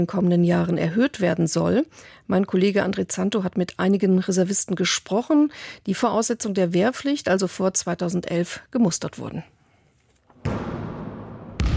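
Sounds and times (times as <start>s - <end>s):
speech: 0.0s - 9.6s
basketball bouncing in a barracks sports hall: 10.4s - 11.7s.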